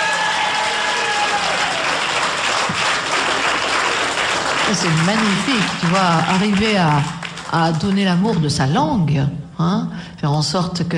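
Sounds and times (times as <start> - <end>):
audience applause: 0.0 - 8.4
speech: 4.7 - 10.9.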